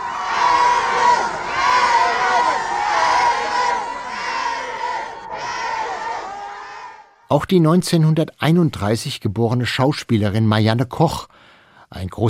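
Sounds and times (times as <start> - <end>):
crowd screaming farewell at a train: 0.0 - 7.2
speech: 7.3 - 12.2.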